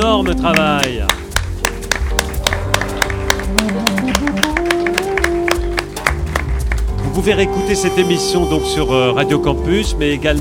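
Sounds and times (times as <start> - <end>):
speech: 0.1 - 1.2, 7.2 - 10.3
audience applause: 0.1 - 7.0.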